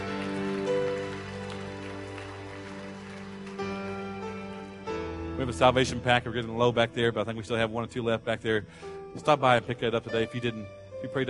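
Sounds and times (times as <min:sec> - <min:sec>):
audience hand clapping: 0:00.0 - 0:04.9
speech: 0:05.4 - 0:11.2.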